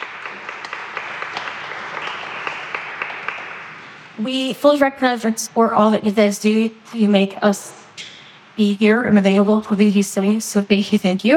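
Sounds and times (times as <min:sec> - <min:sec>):
audience applause: 0:00.0 - 0:03.9
speech: 0:04.2 - 0:07.8, 0:08.6 - 0:11.3.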